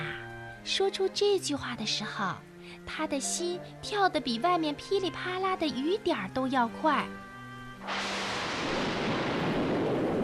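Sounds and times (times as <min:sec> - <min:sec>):
speech: 0:00.7 - 0:08.1
rumbling thunder: 0:07.8 - 0:10.2.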